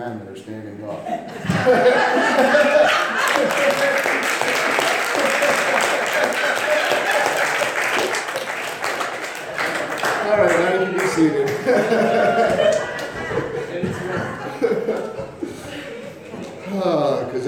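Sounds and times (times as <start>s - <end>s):
speech: 0.0s - 4.8s, 11.2s - 13.0s, 16.8s - 17.4s
laughter and chatter: 0.8s - 7.8s, 9.4s - 17.4s
audience round of applause: 2.3s - 13.3s.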